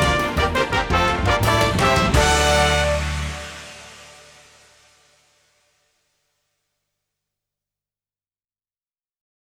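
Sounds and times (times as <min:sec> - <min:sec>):
instrumental music: 0:00.0 - 0:05.3.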